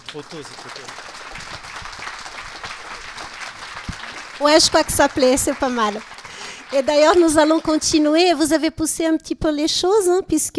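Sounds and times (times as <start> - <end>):
sharp clap: 0.0 - 8.1
audience applause: 0.0 - 8.4
speech: 0.1 - 1.2, 4.4 - 6.1, 6.7 - 10.5.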